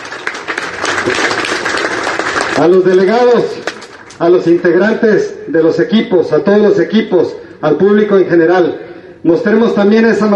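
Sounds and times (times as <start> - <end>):
audience applause at a sports tournament ceremony: 0.0 - 4.2
speech: 1.0 - 1.4, 2.6 - 3.6, 4.2 - 10.3.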